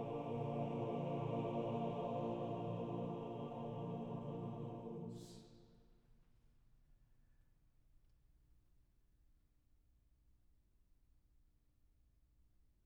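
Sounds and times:
male vocal quartet singing: 0:00.0 - 0:05.5.

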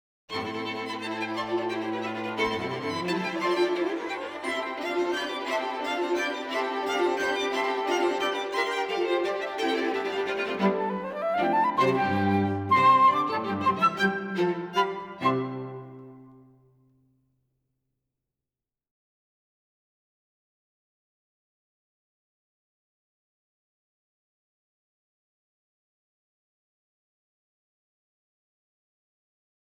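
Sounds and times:
string quartet: 0:00.3 - 0:16.5
flute: 0:00.7 - 0:16.4.

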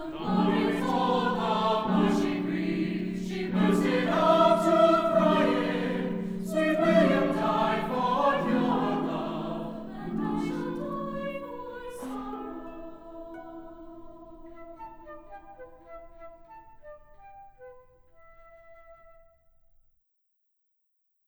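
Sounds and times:
choir singing: 0:00.0 - 0:15.6.

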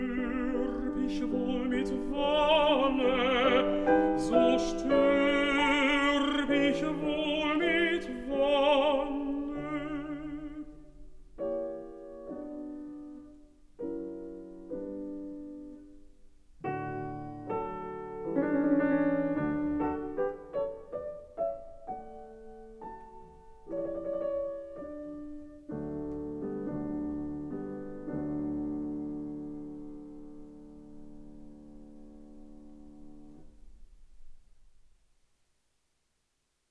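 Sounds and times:
person singing: 0:00.0 - 0:10.9
piano: 0:00.0 - 0:36.0.

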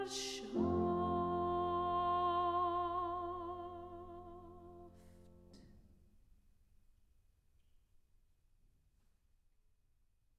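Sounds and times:
person singing a sacred song: 0:00.0 - 0:04.9
piano accompaniment: 0:00.0 - 0:05.7.

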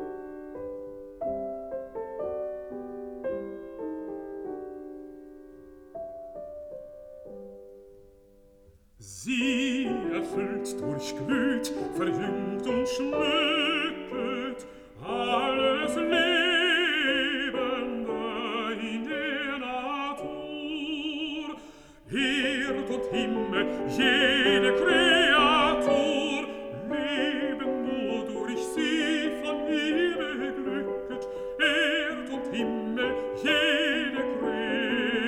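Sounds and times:
piano: 0:00.0 - 0:35.2
person singing: 0:09.0 - 0:35.2.

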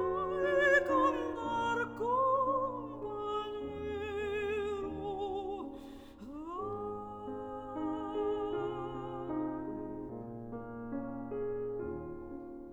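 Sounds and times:
voice: 0:00.0 - 0:09.4
piano: 0:00.0 - 0:12.7.

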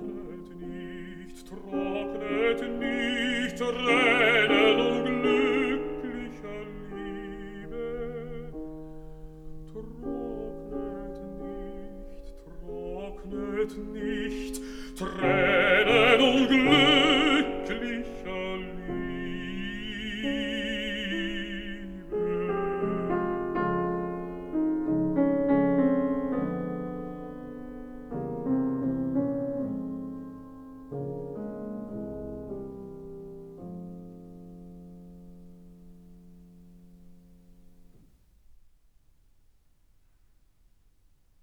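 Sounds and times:
person singing: 0:00.0 - 0:09.0, 0:09.7 - 0:25.1
piano: 0:00.0 - 0:41.4.

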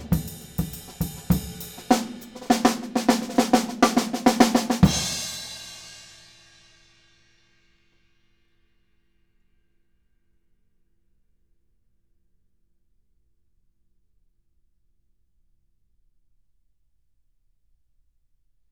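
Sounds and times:
drum hits in a dry studio at 9 feet: 0:00.0 - 0:05.8.

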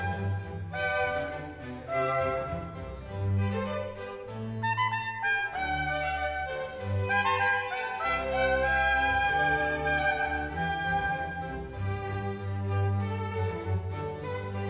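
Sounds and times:
strings playing a canzone in D major: 0:00.0 - 0:14.6
trumpet playing a canzone in D major: 0:00.0 - 0:14.6.

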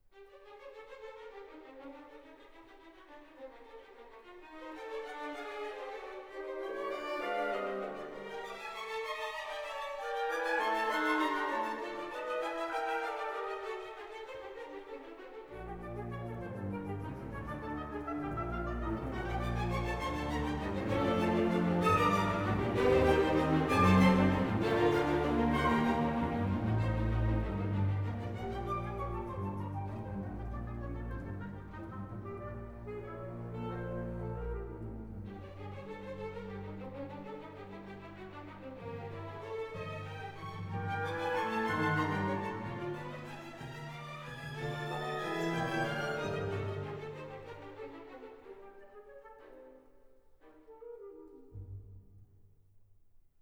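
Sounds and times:
orchestral music allegro: 0:00.6 - 0:52.0.

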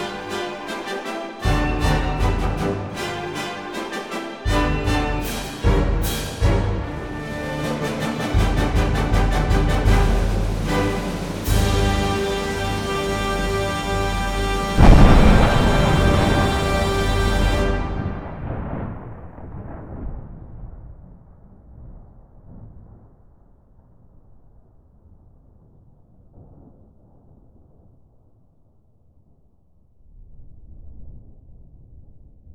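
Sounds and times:
orchestra playing a fast polka: 0:00.0 - 0:18.4.

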